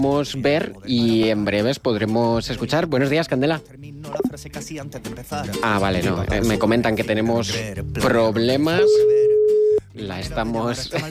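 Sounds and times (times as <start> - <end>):
speech: 0.0 - 9.4, 10.0 - 11.0
electronic telephone tone while a call is placed: 8.7 - 9.8.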